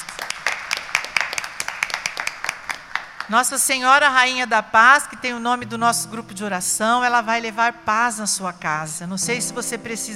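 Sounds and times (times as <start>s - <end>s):
audience applause: 0.0s - 3.3s
speech: 3.3s - 10.1s.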